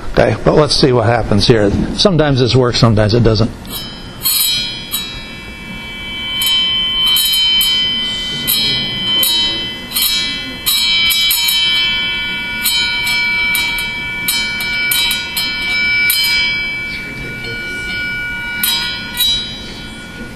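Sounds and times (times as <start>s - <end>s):
speech: 0.2s - 4.6s
dry ice vibrating against metal, ringing tones: 3.4s - 20.3s.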